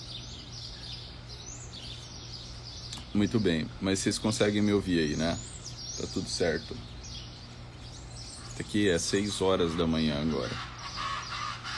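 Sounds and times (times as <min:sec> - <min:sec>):
birds chirping outdoors at dawn: 0:00.0 - 0:11.7
speech: 0:03.1 - 0:07.0, 0:08.6 - 0:10.7.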